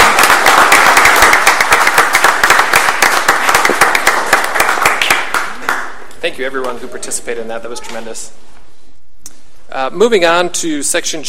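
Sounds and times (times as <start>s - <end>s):
audience applause: 0.0s - 6.0s
speech: 6.4s - 8.5s, 9.8s - 11.2s.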